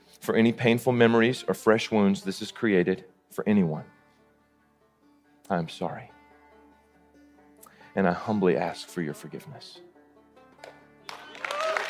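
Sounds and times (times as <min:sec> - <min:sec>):
speech: 0:00.2 - 0:04.0, 0:05.5 - 0:06.2, 0:08.0 - 0:09.9
crowd applause, standing ovation: 0:10.6 - 0:11.8.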